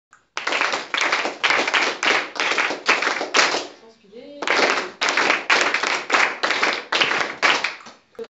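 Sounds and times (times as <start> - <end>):
hands clapping: 0.4 - 3.8, 4.4 - 8.0.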